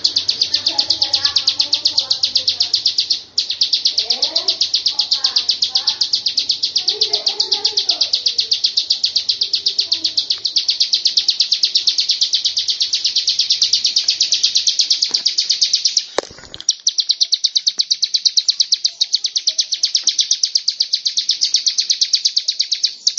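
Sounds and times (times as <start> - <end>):
fast shrill pulsing drone: 0.0 - 15.2
bird song: 0.0 - 23.1.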